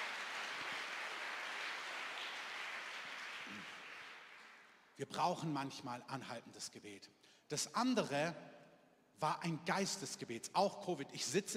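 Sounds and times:
audience applause: 0.0 - 4.8
speech: 5.0 - 8.6, 9.2 - 11.5.

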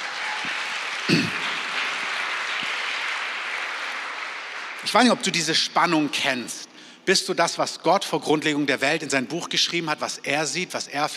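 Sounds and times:
audience applauding: 0.0 - 5.5
speech: 1.1 - 1.4, 4.8 - 11.1.

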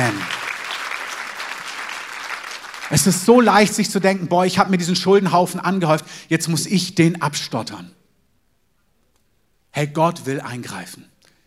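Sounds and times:
audience applause: 0.0 - 4.3
speech: 2.9 - 8.0, 9.8 - 11.1.

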